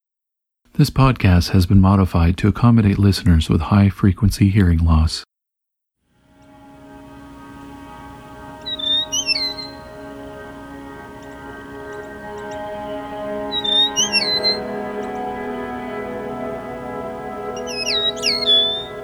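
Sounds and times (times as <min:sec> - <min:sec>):
speech: 0:00.8 - 0:05.3
eastern meadowlark song: 0:06.4 - 0:19.0.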